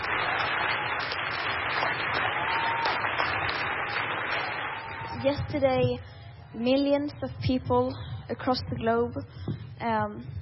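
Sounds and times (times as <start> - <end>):
applause for Greta Thunberg at UN youth climate summit: 0.0 - 6.0
speech: 5.2 - 10.3.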